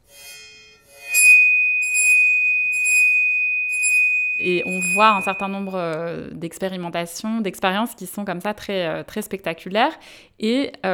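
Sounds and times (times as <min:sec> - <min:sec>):
scratchy violin bow strokes on a metal plate: 0:00.0 - 0:05.8
violin bow drawn across a metal plate ringing: 0:01.1 - 0:05.9
speech: 0:04.4 - 0:10.9.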